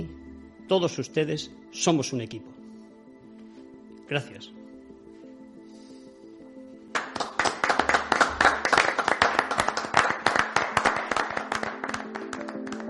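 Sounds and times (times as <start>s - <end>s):
speech: 0.7s - 2.6s, 4.1s - 4.6s
applause after a speech: 6.9s - 12.8s.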